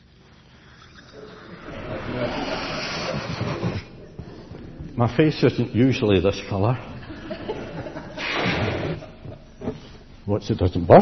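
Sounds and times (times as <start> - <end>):
balloon being inflated with air: 0.0 - 4.0, 8.2 - 10.0
speech: 5.0 - 6.9, 10.3 - 11.0
laughter: 7.0 - 9.8.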